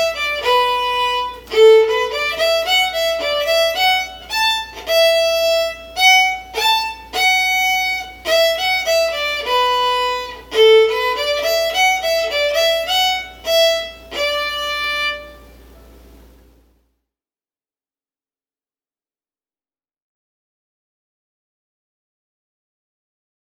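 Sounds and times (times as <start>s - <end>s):
slow tune: 0.0s - 16.8s.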